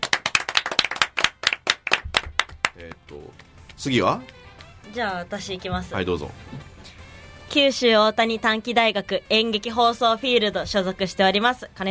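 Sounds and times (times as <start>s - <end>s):
group clapping: 0.0s - 4.7s
speech: 2.8s - 6.7s, 7.6s - 11.8s.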